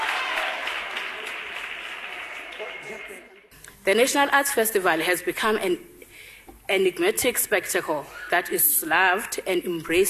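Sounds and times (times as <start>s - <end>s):
audience applause for the executive mayor at an arts festival: 0.0s - 3.4s
speech: 2.6s - 5.9s, 6.7s - 10.0s.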